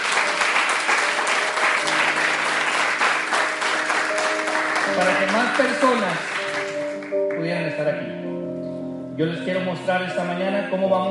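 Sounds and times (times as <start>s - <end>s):
audience applause: 0.0s - 7.4s
speech: 5.0s - 6.4s, 7.5s - 8.2s, 9.2s - 11.0s.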